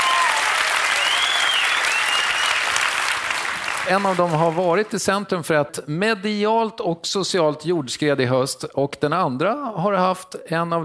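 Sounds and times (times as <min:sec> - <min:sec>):
audience applause: 0:00.0 - 0:05.0
speech: 0:03.9 - 0:10.8.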